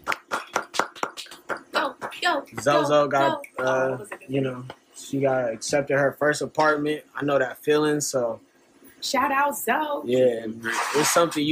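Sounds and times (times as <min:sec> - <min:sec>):
hand claps from a small group: 0:00.0 - 0:04.8
speech: 0:02.3 - 0:11.4.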